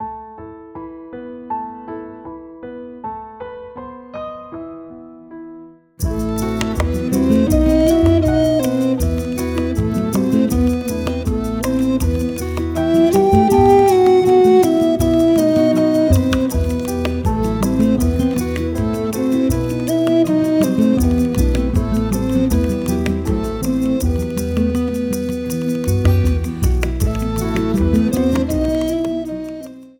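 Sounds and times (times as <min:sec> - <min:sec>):
minor key music: 0:06.0 - 0:29.9.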